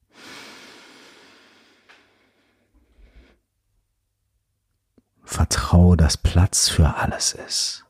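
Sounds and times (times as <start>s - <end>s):
long inhale during a guided meditation: 0.0s - 3.4s
speech: 5.7s - 7.8s.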